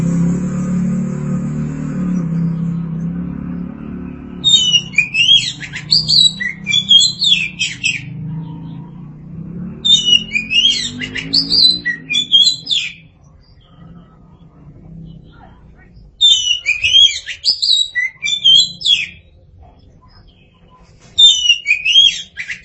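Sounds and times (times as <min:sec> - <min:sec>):
low hum: 0:00.0 - 0:16.9
Oriental magpie-robin song: 0:02.1 - 0:22.6.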